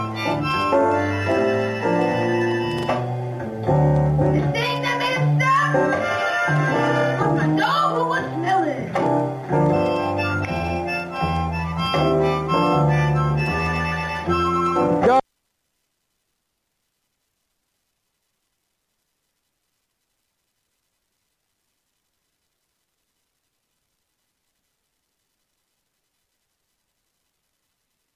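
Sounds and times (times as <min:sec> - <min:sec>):
blues music: 0:00.0 - 0:15.3.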